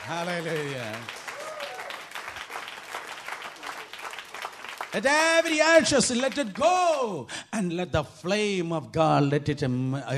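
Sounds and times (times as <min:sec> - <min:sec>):
audience clapping: 0:00.0 - 0:07.2
speech: 0:00.1 - 0:01.2, 0:04.9 - 0:10.1.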